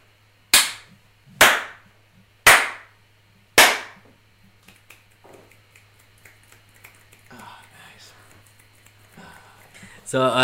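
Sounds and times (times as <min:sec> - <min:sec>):
quiet hum: 0:00.0 - 0:10.4
hand claps: 0:00.6 - 0:01.8, 0:02.5 - 0:02.9, 0:03.6 - 0:04.0, 0:04.6 - 0:09.9
finger snaps: 0:04.6 - 0:09.8.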